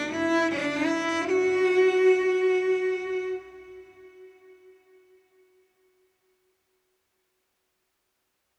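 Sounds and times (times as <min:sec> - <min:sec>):
melancholy street cello and guitar music: 0:00.0 - 0:03.6.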